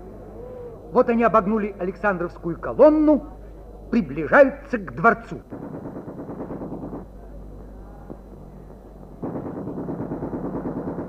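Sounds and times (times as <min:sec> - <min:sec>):
low rumbling: 0:00.0 - 0:11.0
speech: 0:00.9 - 0:06.0
rapid gunfire bursts: 0:04.9 - 0:07.5, 0:08.1 - 0:11.0.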